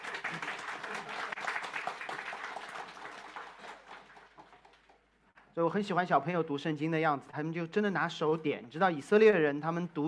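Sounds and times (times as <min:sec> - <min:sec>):
audience applause: 0:00.0 - 0:05.1
speech: 0:05.6 - 0:10.0.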